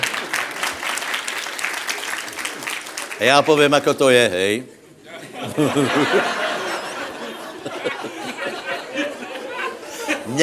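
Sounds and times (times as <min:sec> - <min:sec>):
audience applause: 0:00.0 - 0:03.8
speech: 0:03.2 - 0:04.8, 0:05.4 - 0:06.4
laughter: 0:05.1 - 0:10.4.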